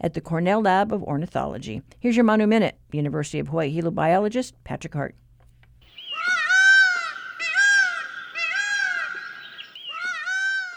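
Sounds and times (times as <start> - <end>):
speech: 0.0 - 5.2
Indian peafowl (peacock) call: 5.9 - 10.7.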